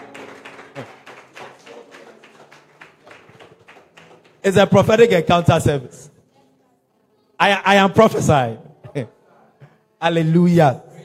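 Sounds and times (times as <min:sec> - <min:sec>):
audience clapping: 0:00.0 - 0:05.1
speech: 0:00.8 - 0:01.0, 0:04.4 - 0:06.1, 0:07.4 - 0:09.2, 0:10.0 - 0:10.9.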